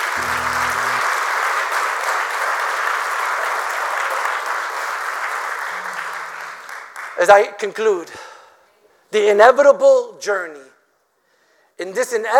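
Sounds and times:
audience hand clapping: 0.0 - 7.2
speech: 7.2 - 8.3, 9.1 - 10.7, 11.8 - 12.3.

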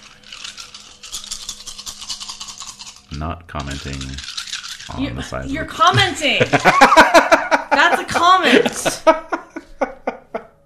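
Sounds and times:
handful of dice being rolled: 0.0 - 6.2
speech: 3.1 - 9.4
laughter: 5.8 - 10.5.

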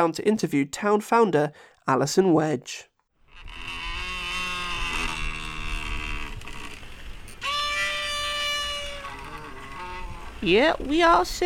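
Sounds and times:
speech: 0.0 - 2.9, 10.4 - 11.4
door squeaking: 3.3 - 11.2.

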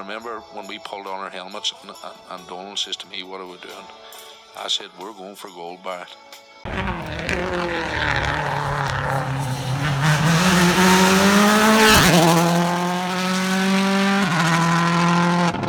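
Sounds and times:
speech: 0.0 - 8.6
gritty tire skidding: 6.7 - 15.6
rally car engine roaring: 6.7 - 15.6.

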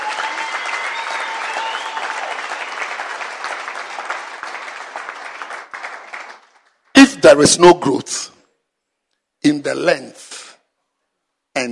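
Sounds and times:
audience clapping at a church gathering: 0.0 - 6.9
speech: 7.2 - 8.2, 9.4 - 10.2.

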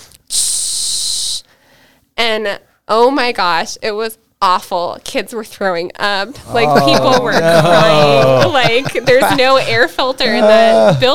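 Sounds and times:
voice imitating a bear spray hiss: 0.3 - 1.4
speech: 2.4 - 11.1
laughter: 6.3 - 11.1.

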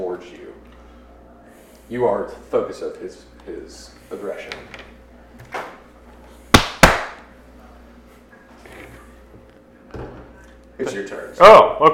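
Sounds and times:
speech: 1.9 - 4.9, 10.8 - 11.9
fist pounding on chest: 6.5 - 7.2.

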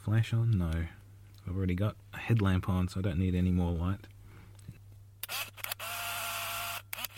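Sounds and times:
speech: 0.1 - 4.1
camera shutter firing: 5.2 - 7.1.

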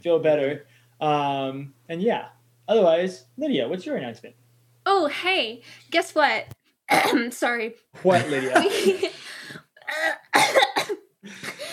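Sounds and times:
speech: 0.0 - 9.2
person coughing after choking: 6.9 - 7.3, 9.9 - 11.7
laughter: 8.1 - 9.2.

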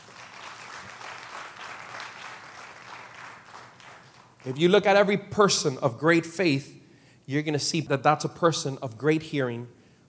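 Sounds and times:
audience applause: 0.0 - 4.6
speech: 4.4 - 9.8.

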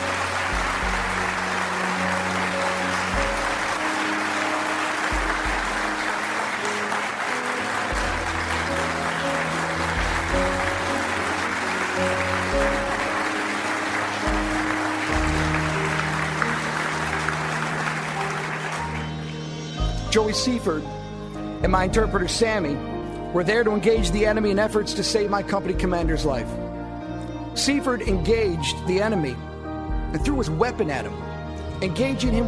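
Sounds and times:
audience applause: 0.0 - 19.8
speech: 20.2 - 21.0, 21.6 - 26.6, 27.6 - 29.5, 30.1 - 32.4.

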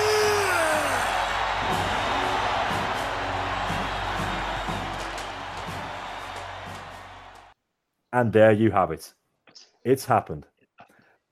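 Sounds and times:
huge arena crowd cheering: 0.0 - 7.6
speech: 8.2 - 9.2, 9.8 - 10.5.

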